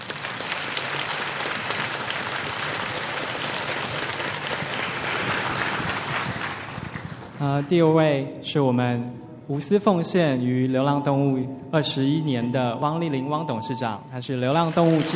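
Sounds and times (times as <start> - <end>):
audience applause: 0.0 - 7.4, 14.4 - 15.1
speech: 7.4 - 15.1.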